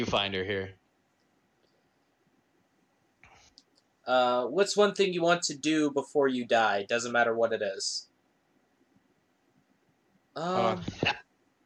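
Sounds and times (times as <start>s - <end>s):
speech: 0.0s - 0.8s, 4.0s - 8.1s, 10.4s - 11.2s
person sneezing painfully: 10.5s - 11.2s.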